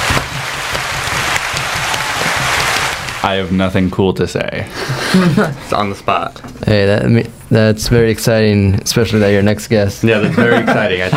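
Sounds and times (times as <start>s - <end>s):
group applauding: 0.0s - 3.4s
speech: 3.2s - 11.1s
laughter: 4.7s - 5.8s, 10.1s - 11.1s.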